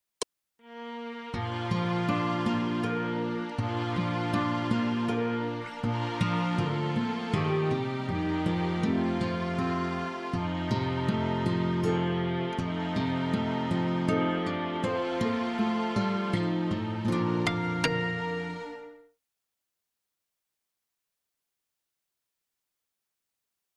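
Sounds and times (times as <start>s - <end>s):
lullaby duet: 1.0s - 19.0s.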